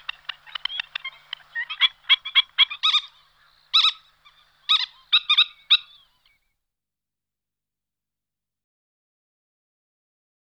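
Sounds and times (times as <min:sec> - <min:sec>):
black-winged stilt calling with harsh nasal yelps: 0:00.0 - 0:06.3.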